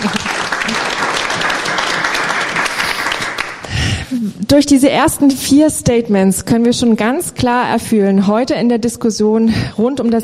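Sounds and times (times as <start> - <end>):
crowd applause: 0.0 - 4.0
speech: 4.3 - 10.2.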